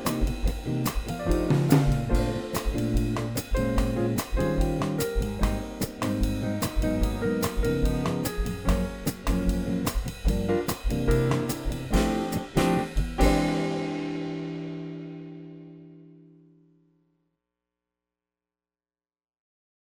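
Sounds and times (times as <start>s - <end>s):
muted bass in a Latin rhythm section: 0.0s - 14.5s.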